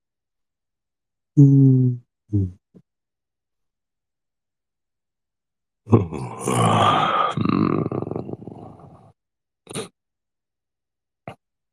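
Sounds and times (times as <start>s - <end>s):
person yawning: 5.9s - 9.0s
voiced grunts: 5.9s - 9.1s.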